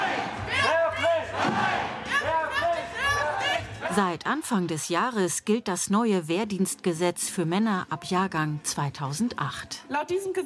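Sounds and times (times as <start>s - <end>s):
protest crowd chanting slogans against military conscription: 0.0s - 4.1s
speech: 4.0s - 10.4s.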